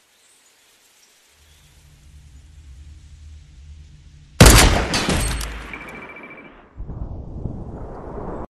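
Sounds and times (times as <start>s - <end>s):
sniper rifle headshot: 4.4s - 6.1s.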